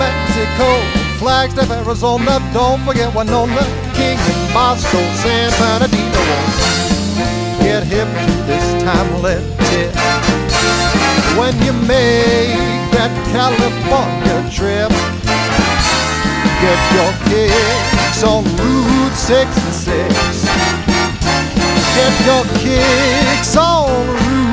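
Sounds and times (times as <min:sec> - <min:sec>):
big band playing in Los Angeles: 0:00.0 - 0:24.5.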